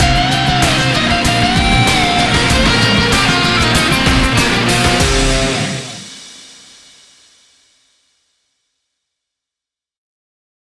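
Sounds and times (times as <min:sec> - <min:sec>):
campaign victory music: 0:00.0 - 0:06.2.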